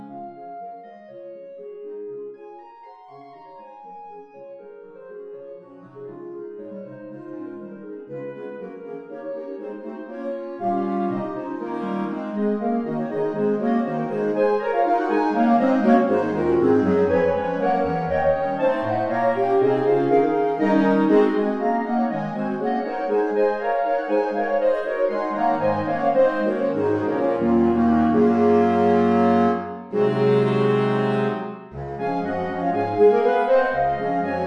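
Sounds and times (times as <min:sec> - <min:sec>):
clarinet ensemble playing: 0:08.5 - 0:34.4.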